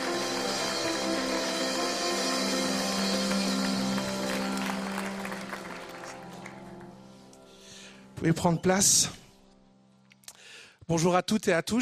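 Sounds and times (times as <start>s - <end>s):
church congregation clapping and cheering in celebration during worship: 0.0s - 7.1s
speech: 8.2s - 9.2s, 10.9s - 11.7s.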